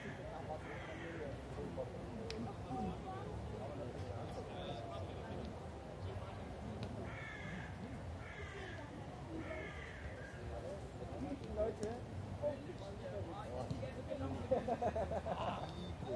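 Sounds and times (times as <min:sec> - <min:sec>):
crows calling: 0:00.0 - 0:01.4, 0:07.0 - 0:10.5
people passing and talking in a park: 0:00.0 - 0:16.1
laughter: 0:14.2 - 0:16.1.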